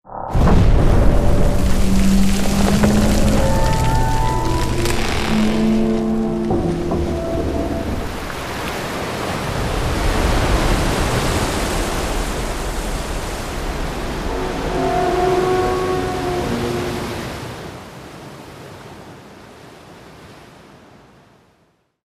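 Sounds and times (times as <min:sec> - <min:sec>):
earthquake collapse rumble: 0:00.1 - 0:16.6
water rushing: 0:00.3 - 0:20.6
water splashing: 0:00.4 - 0:17.7.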